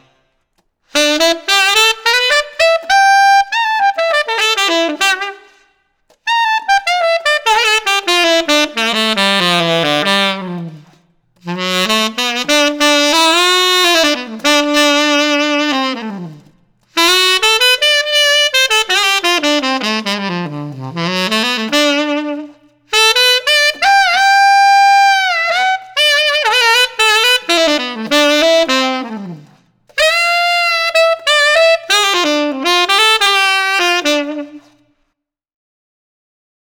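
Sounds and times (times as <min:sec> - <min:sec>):
tenor saxophone with alternate reverb: 0:00.0 - 0:35.1.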